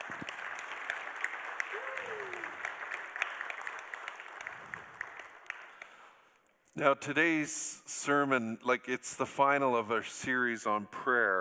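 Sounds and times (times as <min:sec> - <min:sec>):
congregation clapping in a church to welcome new members: 0:00.0 - 0:06.4
speech: 0:06.8 - 0:11.3.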